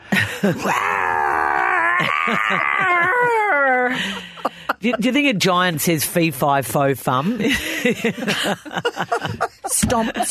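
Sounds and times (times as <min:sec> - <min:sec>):
speech: 0:00.4 - 0:00.9, 0:02.0 - 0:10.2
person imitating a tiger's roar: 0:00.4 - 0:04.0
laughter: 0:02.0 - 0:05.3, 0:07.2 - 0:10.2.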